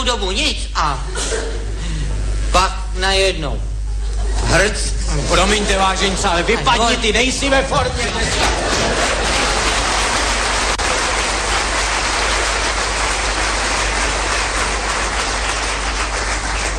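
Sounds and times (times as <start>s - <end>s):
speech: 0.1s - 3.7s, 4.5s - 9.4s
laughter: 1.0s - 2.4s, 3.8s - 15.8s
steady dense clapping from a large audience: 7.8s - 16.7s.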